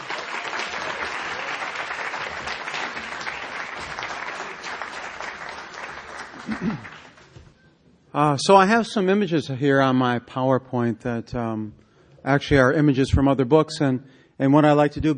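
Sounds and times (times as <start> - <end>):
audience applauding to welcome a guest speaker to the stage: 0.0 - 7.4
speech: 6.5 - 7.0, 8.1 - 15.1.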